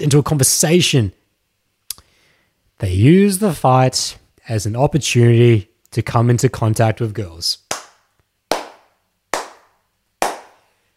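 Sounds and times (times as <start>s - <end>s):
speech: 0.0s - 1.2s, 2.8s - 7.6s
slow clap: 7.7s - 10.8s.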